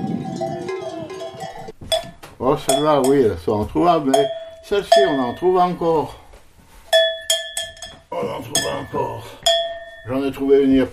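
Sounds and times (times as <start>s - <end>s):
small bell ringing: 0.2s - 2.1s, 4.1s - 5.8s, 6.9s - 10.3s
speech: 2.4s - 6.2s, 10.1s - 10.9s.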